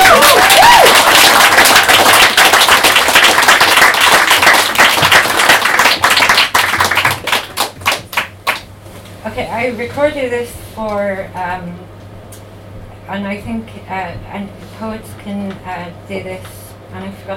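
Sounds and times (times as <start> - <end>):
audience clapping: 0.0 - 8.7
speech: 9.7 - 12.0, 13.1 - 17.3.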